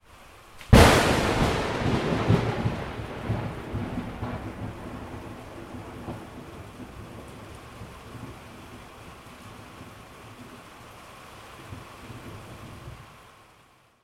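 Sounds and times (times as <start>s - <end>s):
explosion: 0.7s - 3.6s.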